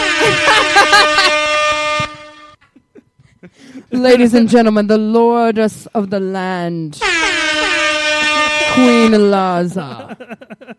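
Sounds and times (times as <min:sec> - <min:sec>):
trumpet-like horn fanfare: 0:00.0 - 0:02.6, 0:07.0 - 0:09.3
laughter: 0:00.0 - 0:04.3, 0:07.2 - 0:09.1, 0:09.7 - 0:10.7
speech: 0:04.0 - 0:07.3, 0:08.8 - 0:10.7.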